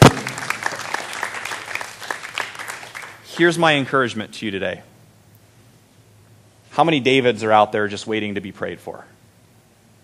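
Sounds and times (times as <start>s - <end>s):
audience applause: 0.0s - 3.2s
speech: 3.4s - 4.9s, 6.8s - 9.2s.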